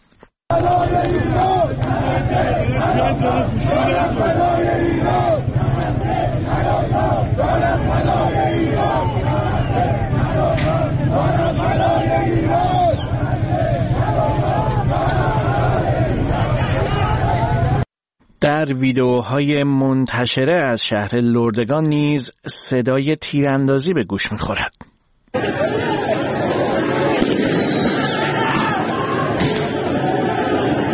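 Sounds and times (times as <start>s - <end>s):
street protesters chanting slogans: 0.5s - 17.8s, 25.4s - 30.9s
speech: 18.6s - 24.8s.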